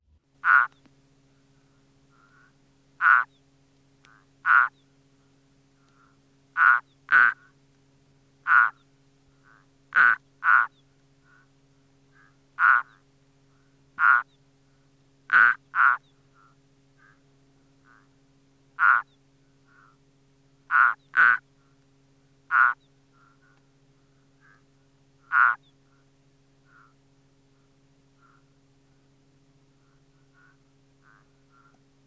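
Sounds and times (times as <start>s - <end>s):
frog: 0.4s - 0.8s, 2.1s - 3.4s, 4.1s - 4.8s, 5.8s - 7.6s, 8.4s - 8.8s, 9.4s - 11.5s, 12.1s - 14.4s, 15.3s - 17.2s, 17.8s - 18.2s, 18.8s - 20.0s, 20.7s - 21.5s, 22.5s - 23.7s, 24.4s - 26.0s, 26.6s - 27.0s, 28.2s - 28.6s, 29.8s - 31.8s.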